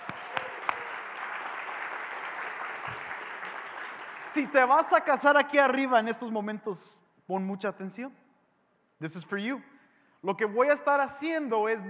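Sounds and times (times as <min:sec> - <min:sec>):
audience applause: 0:00.0 - 0:05.0
speech: 0:04.4 - 0:08.2, 0:09.0 - 0:11.8.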